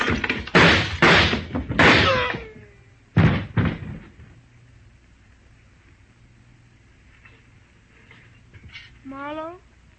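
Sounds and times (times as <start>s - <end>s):
gunshots in a radio drama: 0.0s - 2.4s.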